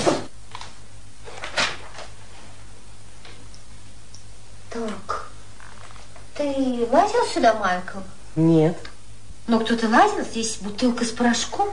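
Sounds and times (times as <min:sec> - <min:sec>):
wooden sideboard drawer sliding open and shut: 0:00.0 - 0:00.3, 0:01.3 - 0:02.1
low steady hum: 0:00.0 - 0:11.7
speech: 0:06.5 - 0:08.9, 0:09.5 - 0:11.7.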